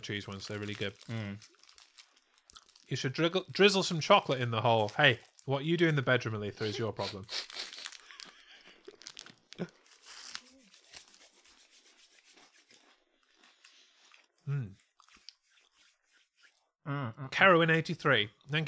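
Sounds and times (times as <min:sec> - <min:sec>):
speech: 0:00.0 - 0:01.6, 0:02.9 - 0:07.5, 0:17.1 - 0:18.6
eating crisps: 0:00.0 - 0:03.7, 0:04.3 - 0:11.7, 0:12.4 - 0:15.4
crisp packet crinkling: 0:00.0 - 0:06.0, 0:06.7 - 0:13.7.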